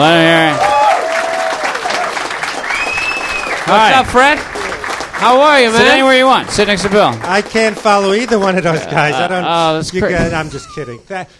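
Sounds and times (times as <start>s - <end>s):
audience applause welcoming a guest onto the stage: 0.0s - 9.5s
speech: 3.7s - 4.5s, 5.2s - 11.3s.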